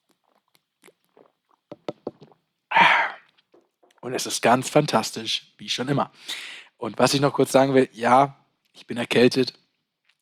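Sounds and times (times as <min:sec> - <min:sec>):
Tegernseer Hell lager bottle clicks and taps: 0:01.7 - 0:02.4
speech: 0:04.0 - 0:09.6.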